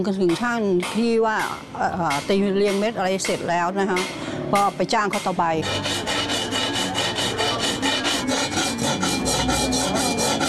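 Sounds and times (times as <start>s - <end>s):
speech: 0.0s - 6.0s
hand file rasping across a piece: 5.1s - 10.4s.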